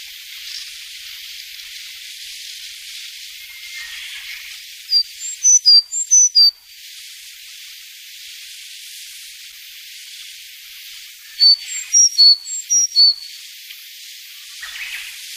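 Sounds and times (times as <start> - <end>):
quiet hiss: 0.0 - 15.3
Sakhalin leaf warbler whistling: 3.4 - 6.6, 11.3 - 13.5.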